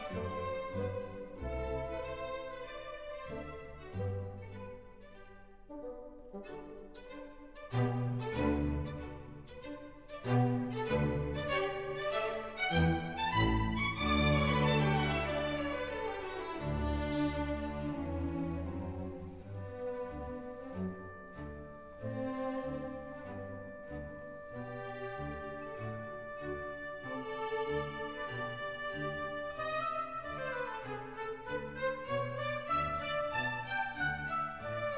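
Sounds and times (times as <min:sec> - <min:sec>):
chamber orchestra playing a symphony: 0:00.0 - 0:34.9.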